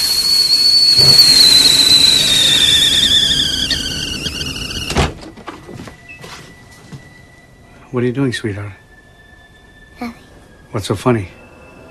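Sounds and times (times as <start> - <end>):
kettle steaming furiously and spitting out boiling water: 0.0 - 4.8
speech: 8.0 - 8.8, 10.0 - 11.4.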